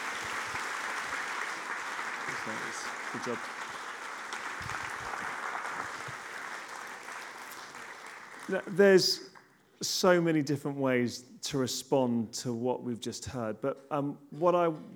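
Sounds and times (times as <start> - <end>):
audience applause: 0.0 - 8.8
speech: 2.4 - 3.6, 8.5 - 14.9.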